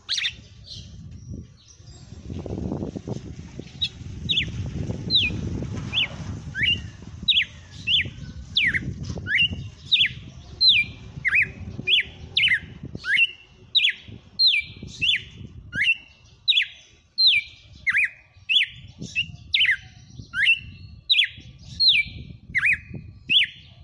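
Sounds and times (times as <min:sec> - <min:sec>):
female red-cowled cardinal singing: 0:00.0 - 0:23.8.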